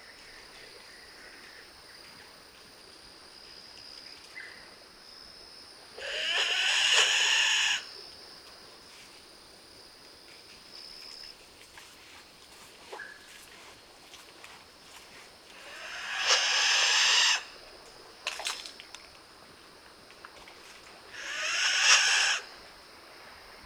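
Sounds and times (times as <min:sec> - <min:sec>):
kagu calling: 0:06.0 - 0:07.9, 0:15.6 - 0:17.6, 0:21.1 - 0:22.5.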